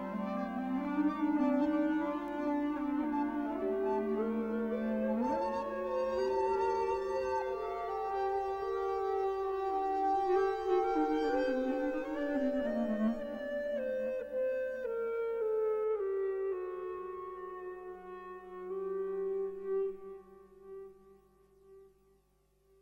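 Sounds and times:
ebow flute tone: 0.0s - 21.9s.

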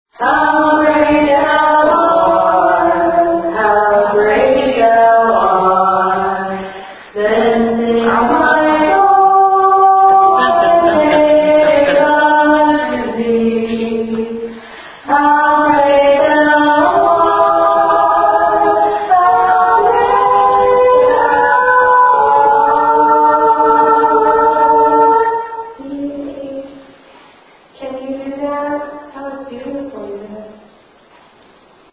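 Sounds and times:
EVP weeping in a dance studio: 0.2s - 26.1s
laughter: 10.0s - 12.4s.

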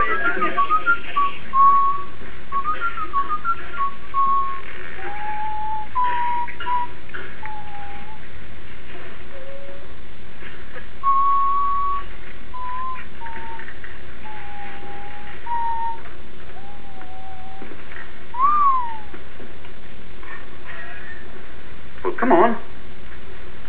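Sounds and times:
whistle: 0.0s - 10.0s, 11.0s - 19.2s.

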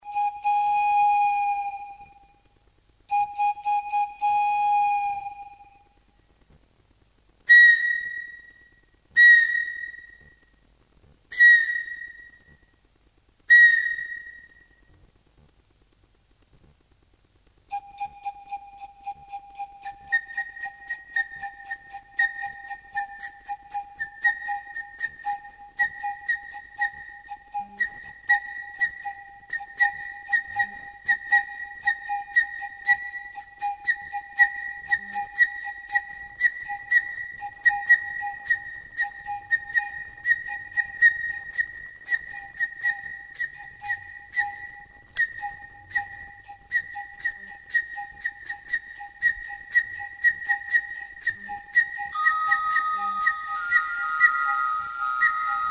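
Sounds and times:
pifilka ethnic flute: 0.0s - 2.5s, 3.1s - 6.1s, 7.4s - 10.6s, 11.3s - 12.8s, 13.4s - 15.0s, 17.7s - 55.7s.

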